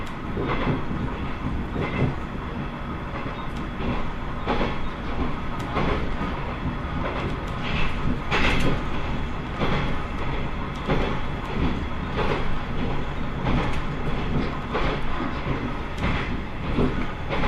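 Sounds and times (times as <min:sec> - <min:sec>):
Tenryū Hamanako Railway train wheels and motor rumbling between Miyakoda and Tenryū-Futamata: 0:00.0 - 0:17.4
rail joint clicks: 0:00.0 - 0:17.4.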